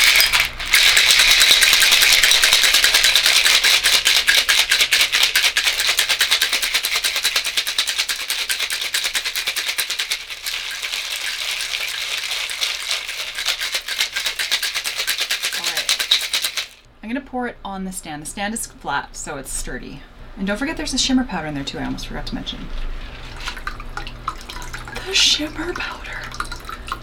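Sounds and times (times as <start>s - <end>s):
cocktail shaker shaken vigorously with ice and cucumber pieces: 0.0s - 16.9s
speech: 17.4s - 22.9s, 25.1s - 26.2s.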